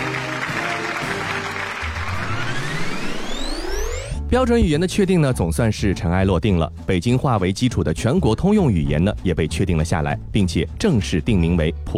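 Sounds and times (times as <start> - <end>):
audience applause: 0.0 - 3.6
speech: 4.3 - 11.9.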